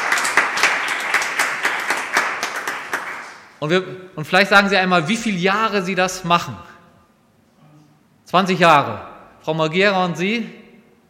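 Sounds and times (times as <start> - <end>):
audience applause: 0.0 - 3.5
speech: 3.6 - 6.7, 8.3 - 10.6.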